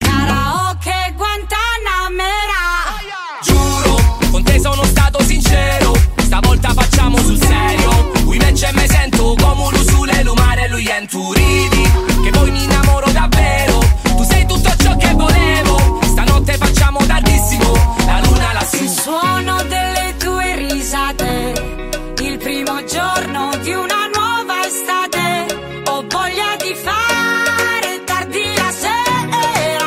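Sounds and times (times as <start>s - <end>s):
karaoke singing: 0.0s - 29.8s.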